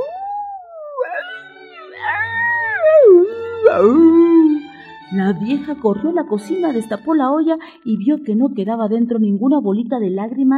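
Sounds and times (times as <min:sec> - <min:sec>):
coyotes howling around a house: 0:00.0 - 0:04.7
speech: 0:03.8 - 0:04.1, 0:05.1 - 0:10.5.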